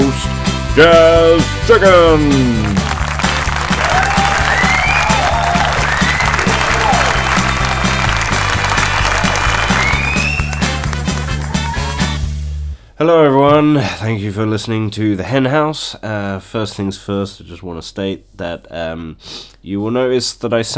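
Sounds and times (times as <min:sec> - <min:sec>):
rhythmic low musical backing: 0:00.0 - 0:12.8
speech: 0:00.8 - 0:02.8, 0:13.7 - 0:20.7
canned studio audience applause: 0:01.9 - 0:12.2
scattered whoops and whistles: 0:04.0 - 0:06.5, 0:09.6 - 0:10.8.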